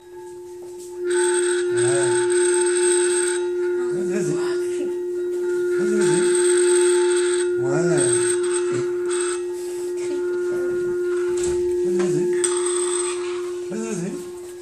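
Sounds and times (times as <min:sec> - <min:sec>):
singing stones: 0:00.0 - 0:14.5.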